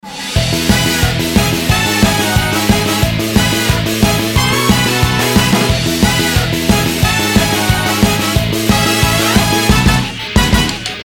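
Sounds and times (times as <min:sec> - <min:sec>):
horns: 0:00.1 - 0:11.0.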